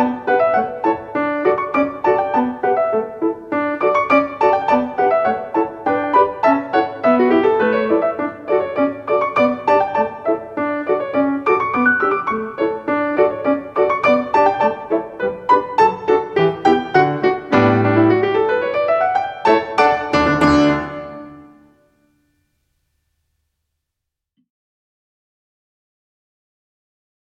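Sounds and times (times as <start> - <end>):
springtime dance piano music: 0.0 - 22.0.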